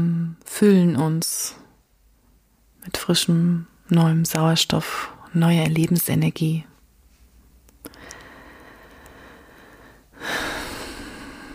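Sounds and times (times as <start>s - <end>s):
speech: 0.0s - 1.6s, 2.8s - 6.7s
faint clicks: 7.7s - 9.2s
slow breathing in and out during a guided breathing exercise: 7.8s - 11.5s.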